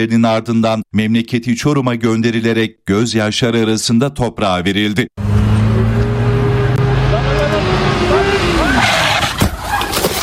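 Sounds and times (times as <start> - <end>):
speech: 0.0 - 5.3
speeding motorcycle engine whine: 5.2 - 9.0
skidding rasp: 5.2 - 10.2.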